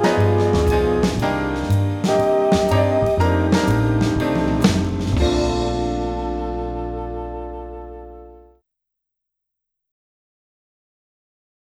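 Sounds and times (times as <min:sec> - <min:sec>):
instrumental beat without vocals: 0:00.0 - 0:07.2.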